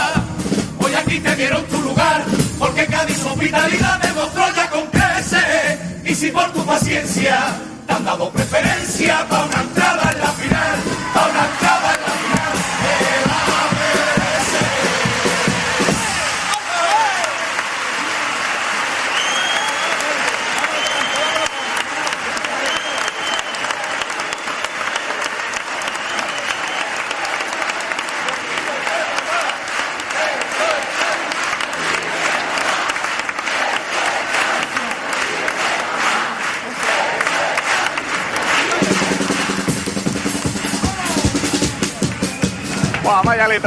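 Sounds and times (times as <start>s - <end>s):
crowd noise: 0.0s - 43.6s
speech: 1.1s - 5.4s, 6.1s - 11.5s, 43.4s - 43.6s
audience applause at a Cádiz carnival pasodoble: 9.1s - 43.6s.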